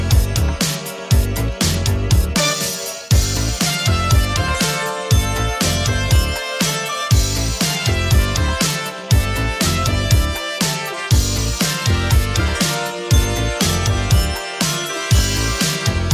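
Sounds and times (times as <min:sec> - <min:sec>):
1980s style music at 120 bpm: 0:00.0 - 0:16.1.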